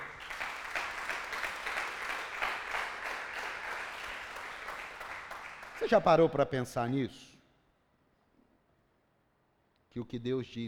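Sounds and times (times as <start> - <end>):
audience applause: 0.0 - 6.0
speech: 5.8 - 7.4, 10.0 - 10.6.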